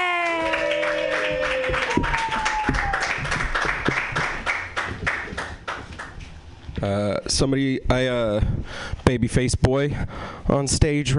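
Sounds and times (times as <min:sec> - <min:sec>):
audience applause at a comedy show: 0:00.0 - 0:06.2
speech: 0:06.8 - 0:11.1.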